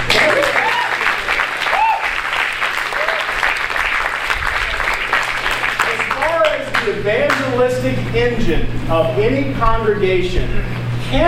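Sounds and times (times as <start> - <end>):
audience clapping: 0.0 - 7.6
speech: 8.1 - 11.2.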